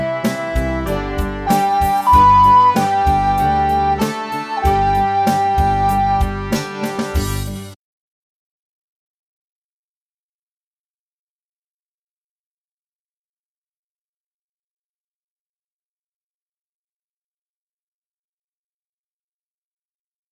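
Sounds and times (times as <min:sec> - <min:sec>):
recorder parade music: 0:00.0 - 0:07.8.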